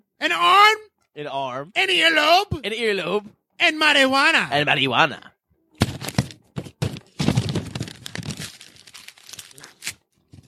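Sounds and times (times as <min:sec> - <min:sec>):
speech: 0:01.2 - 0:05.3
package being ripped open with teeth: 0:05.8 - 0:10.4.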